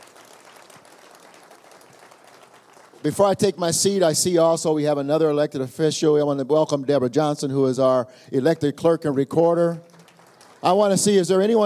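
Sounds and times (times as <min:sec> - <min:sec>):
audience applause: 0:00.0 - 0:03.4, 0:09.9 - 0:11.6
speech: 0:03.0 - 0:09.9, 0:10.6 - 0:11.6.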